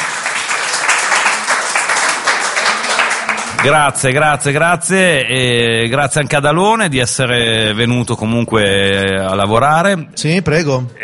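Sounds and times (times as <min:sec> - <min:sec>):
crowd applause: 0:00.0 - 0:04.3
speech: 0:03.6 - 0:11.0.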